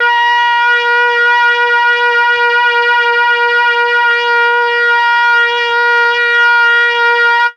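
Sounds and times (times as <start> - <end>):
brass: 0.0 - 7.5.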